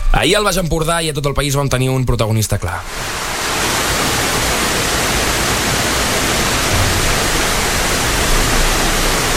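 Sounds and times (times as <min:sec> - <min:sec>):
speech: 0:00.2 - 0:03.3
heavy rain: 0:02.9 - 0:09.3.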